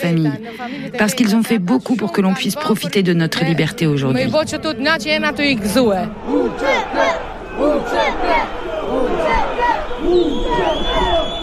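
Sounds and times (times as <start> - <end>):
speech: 0.0 - 11.0
protest crowd shouting in indignation: 5.8 - 11.4.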